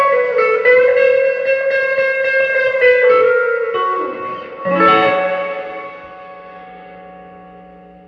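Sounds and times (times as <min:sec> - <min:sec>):
electric guitar through a Vox amp with reverb set at 6 playing chords: 0:00.0 - 0:08.0.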